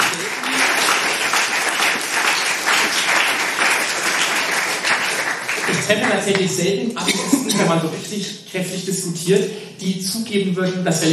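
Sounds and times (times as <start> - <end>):
audience applause: 0.0 - 6.4
speech: 5.9 - 11.1.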